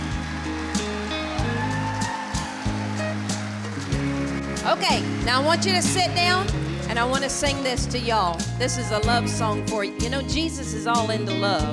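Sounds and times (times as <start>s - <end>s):
audience applauding with hand clapping: 0.0s - 7.6s
speech: 4.7s - 11.7s.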